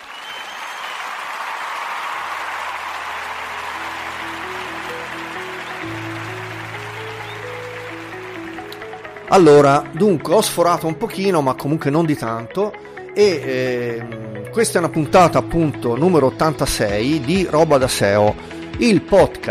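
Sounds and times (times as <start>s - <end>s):
applause sound effect: 0.0s - 9.8s
low bass note and simple stepping melody: 3.6s - 19.4s
speech: 9.3s - 19.4s.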